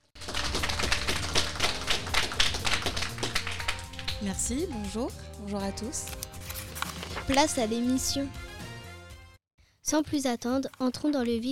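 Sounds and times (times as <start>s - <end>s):
audience applauding: 0.0s - 4.4s
speech: 4.2s - 6.2s, 7.3s - 8.4s, 9.9s - 11.5s.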